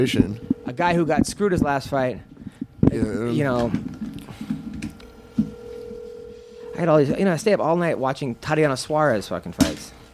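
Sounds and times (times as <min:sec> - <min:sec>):
steady mid-pitched phone tone: 0:00.0 - 0:01.1, 0:05.2 - 0:07.1
speech: 0:00.0 - 0:02.3, 0:02.9 - 0:04.0, 0:06.8 - 0:10.0.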